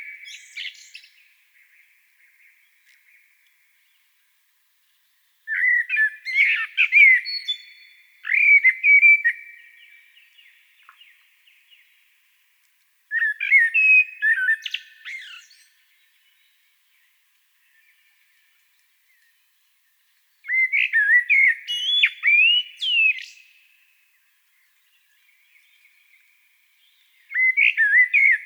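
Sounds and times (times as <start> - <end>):
common blackbird song: 0.0 - 28.4.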